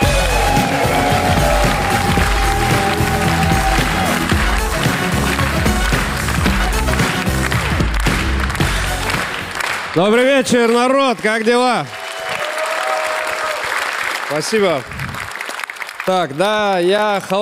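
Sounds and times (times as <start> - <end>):
faint whistles and cheers: 0.0 - 4.2, 11.9 - 13.9
audience applause: 0.0 - 17.3
speech: 10.0 - 12.0, 14.3 - 15.0, 16.0 - 17.3.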